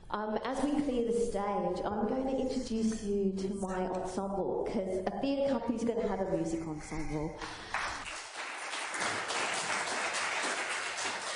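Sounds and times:
speech: 0.1s - 7.8s
audience applause: 7.7s - 11.3s.

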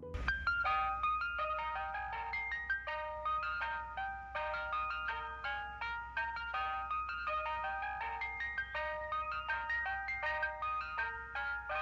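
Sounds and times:
electronic ice cream van chime playing an American folk melody: 0.0s - 11.8s.

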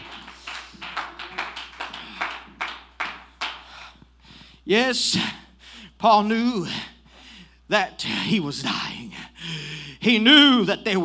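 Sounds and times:
audience clapping hands: 0.0s - 4.0s
speech: 4.7s - 5.4s, 6.0s - 6.9s, 7.7s - 9.0s, 10.0s - 11.0s.

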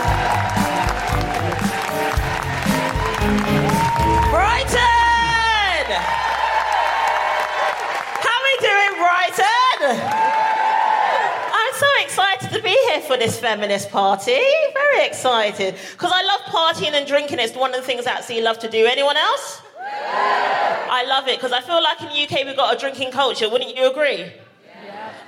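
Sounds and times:
audience whooping and shouting: 0.0s - 8.2s, 9.4s - 11.5s
live audience applause at a feminist comedy show: 0.0s - 9.3s, 10.0s - 11.6s
speech: 12.8s - 24.4s.

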